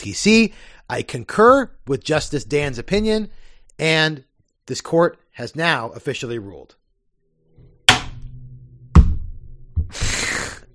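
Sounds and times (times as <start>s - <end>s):
speech: 0.0s - 6.8s
object banged as a makeshift gavel: 7.6s - 10.1s.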